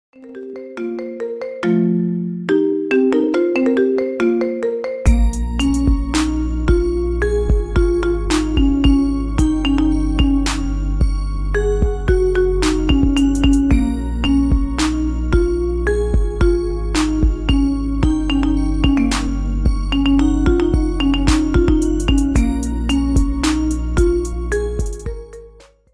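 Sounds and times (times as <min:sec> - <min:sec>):
marimba: 0:00.2 - 0:25.8.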